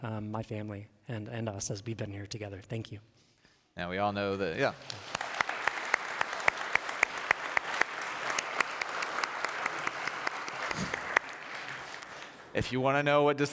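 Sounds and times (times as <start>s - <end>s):
speech: 0.0s - 3.2s, 3.8s - 5.2s, 12.6s - 13.5s
crowd applauding: 4.6s - 12.7s.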